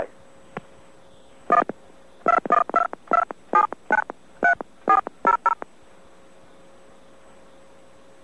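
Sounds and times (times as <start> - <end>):
telephone keypad DTMF tones dialing a number: 1.5 - 1.7, 2.3 - 5.6.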